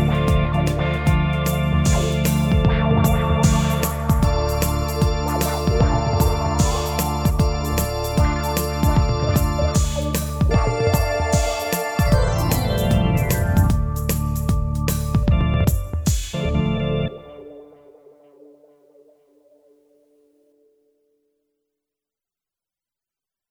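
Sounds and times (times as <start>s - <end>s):
instrumental music: 0.0s - 17.8s.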